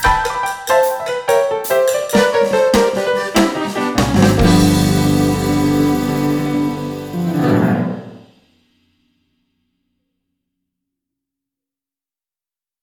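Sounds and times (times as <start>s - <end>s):
zydeco piano party music: 0.0s - 8.3s.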